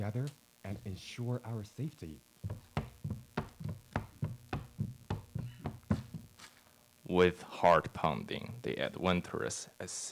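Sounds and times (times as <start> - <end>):
speech: 0.0 - 2.6, 7.1 - 10.1
heavy footsteps overhead: 2.4 - 6.5.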